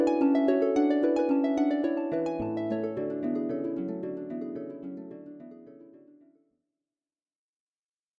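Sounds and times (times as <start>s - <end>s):
harp interval on a Ketron AUDYA keyboard: 0.0s - 6.0s.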